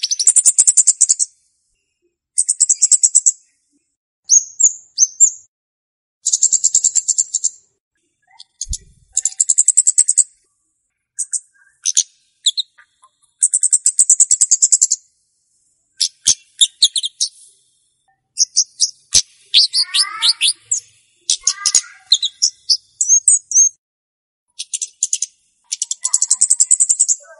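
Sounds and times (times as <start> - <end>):
flowerpecker chirps used as a lure for wild birds: 0.0 - 1.3, 2.4 - 3.4, 4.3 - 5.4, 6.2 - 7.6, 8.2 - 10.5, 11.2 - 15.1, 16.0 - 17.5, 18.4 - 23.8, 24.5 - 27.3.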